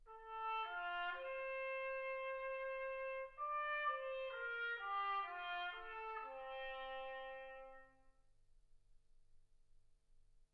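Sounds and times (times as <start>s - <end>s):
trumpet: 0.0s - 8.1s.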